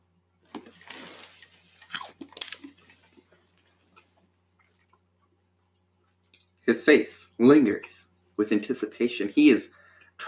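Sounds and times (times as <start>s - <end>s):
biting and chewing fruit that looks like grapes: 0.5s - 5.1s
speech: 6.7s - 10.2s.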